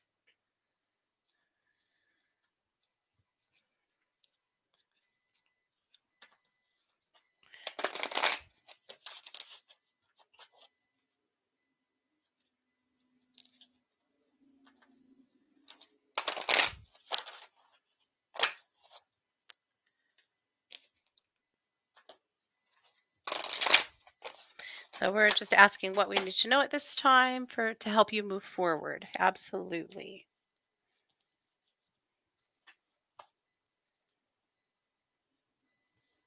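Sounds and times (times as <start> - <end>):
cards shuffled to draw a card for a reading: 7.5 - 10.6, 16.2 - 17.6, 18.4 - 19.0, 23.3 - 24.5
speech: 25.0 - 30.3.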